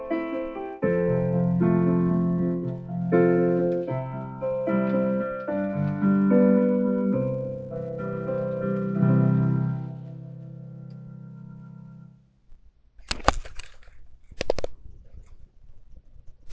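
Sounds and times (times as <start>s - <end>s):
musical accompaniment: 0.0s - 12.1s.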